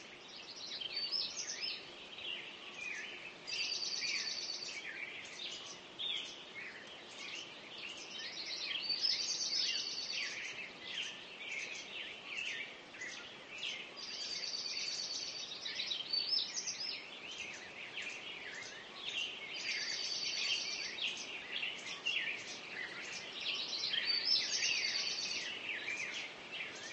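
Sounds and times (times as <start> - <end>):
birds singing at dawn: 0.0 - 26.9.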